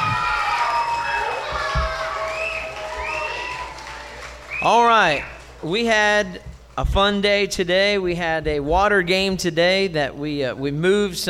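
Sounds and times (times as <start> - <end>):
audience applause: 0.0 - 5.6
speech: 4.6 - 11.2.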